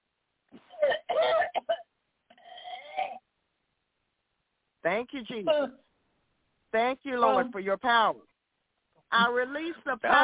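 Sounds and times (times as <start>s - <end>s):
person coughing roughly: 0.6s - 1.8s
speech: 4.8s - 5.9s, 6.7s - 8.3s, 9.1s - 10.2s.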